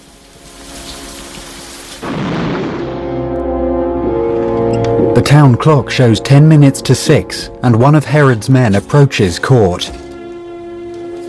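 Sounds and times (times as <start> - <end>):
heavy rain: 0.0 - 3.4
thunder rumbling: 2.0 - 5.7
speech: 5.2 - 10.0.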